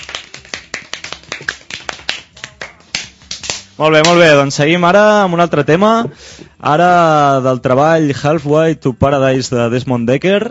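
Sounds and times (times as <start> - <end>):
canned applause sound effect on a radio show: 0.0 - 2.8
speech: 3.8 - 10.4.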